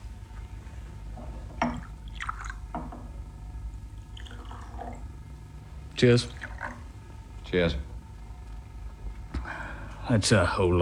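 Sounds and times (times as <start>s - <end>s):
low room hum: 0.0s - 10.7s
scotch and water poured into glass: 1.6s - 3.1s, 4.0s - 5.2s
speech: 6.0s - 6.4s, 7.5s - 7.9s, 10.1s - 10.7s.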